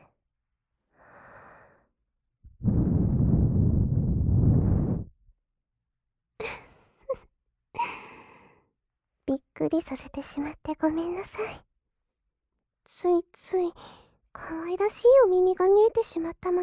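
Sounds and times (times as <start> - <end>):
ASMR breath blown into the ear: 2.6 - 5.1
speech: 9.6 - 11.7, 12.9 - 16.6.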